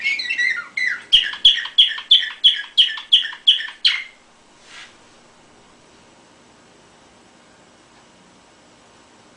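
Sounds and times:
canary singing: 0.0s - 4.2s.

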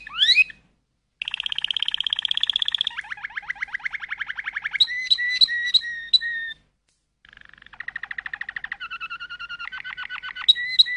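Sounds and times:
canary running through varied rolls: 0.0s - 0.6s, 1.2s - 6.6s, 7.2s - 10.9s.

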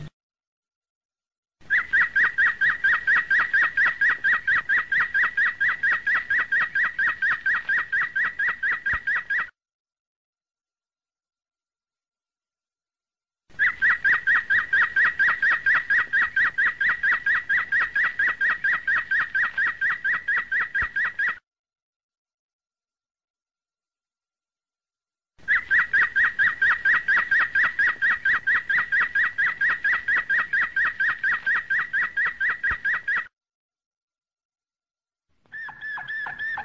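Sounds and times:
domestic canary chirping: 1.7s - 9.5s, 13.6s - 21.4s, 25.4s - 33.3s, 35.5s - 36.6s.

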